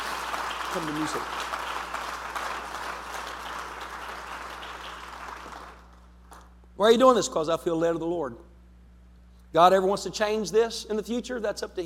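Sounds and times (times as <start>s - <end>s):
crowd clapping in a large room: 0.0s - 6.6s
low steady hum: 0.0s - 11.8s
speech: 0.7s - 1.5s, 6.8s - 8.5s, 9.5s - 11.8s.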